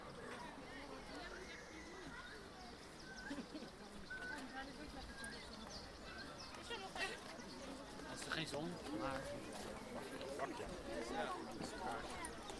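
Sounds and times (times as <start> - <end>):
zoo visitors chattering in Blijdorp, Rotterdam: 0.0 - 12.5.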